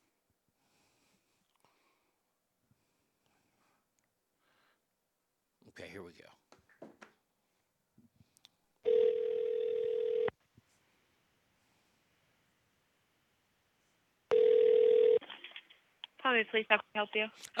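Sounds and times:
speech: 0:05.8 - 0:06.9, 0:16.3 - 0:17.5
telephone dialing: 0:08.9 - 0:10.3, 0:14.3 - 0:15.3.

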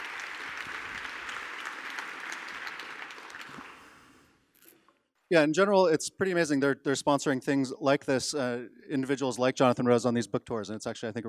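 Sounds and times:
audience round of applause: 0:00.0 - 0:04.3
speech: 0:05.3 - 0:11.2.

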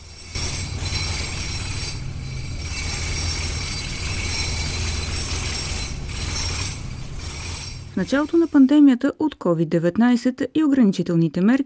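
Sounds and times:
factory production process machinery running: 0:00.0 - 0:08.7
speech: 0:08.0 - 0:11.6.

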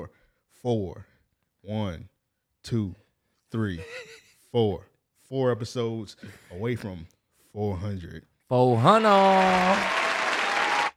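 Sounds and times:
speech: 0:00.0 - 0:10.0
applause sound effect: 0:08.8 - 0:10.9.

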